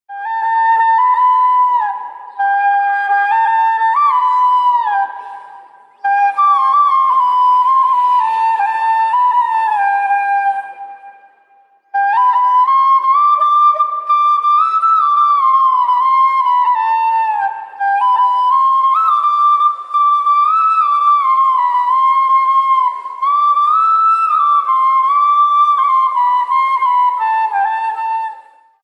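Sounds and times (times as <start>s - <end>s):
flute: 0.1s - 28.8s.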